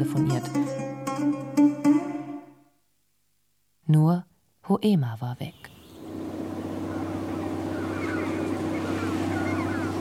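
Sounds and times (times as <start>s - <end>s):
speech: 0.0s - 1.4s, 3.9s - 5.6s
blue boat engine droning: 5.8s - 9.9s
water splashing: 6.0s - 9.9s.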